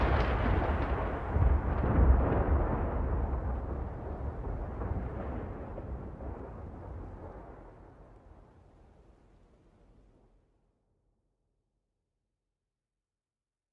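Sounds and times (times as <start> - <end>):
thunder: 0.0 - 9.3.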